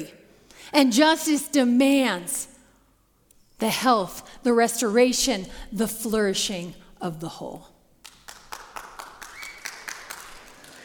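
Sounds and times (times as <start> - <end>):
speech: 0.0 - 2.5, 3.6 - 7.7
audience clapping: 8.0 - 10.8.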